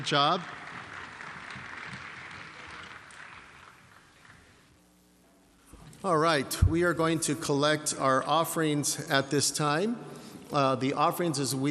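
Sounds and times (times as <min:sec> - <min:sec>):
speech: 0:00.0 - 0:00.6, 0:06.0 - 0:11.6
audience applause for the band: 0:00.0 - 0:04.5.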